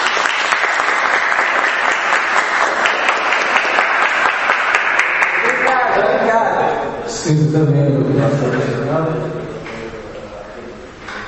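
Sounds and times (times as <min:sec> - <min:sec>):
audience applause: 0:00.0 - 0:06.0
speech: 0:07.3 - 0:09.3.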